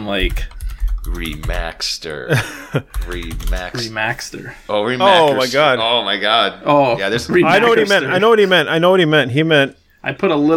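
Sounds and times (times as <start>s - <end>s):
speech: 0.0s - 10.5s
typing on a computer keyboard: 0.2s - 1.7s, 2.9s - 3.8s.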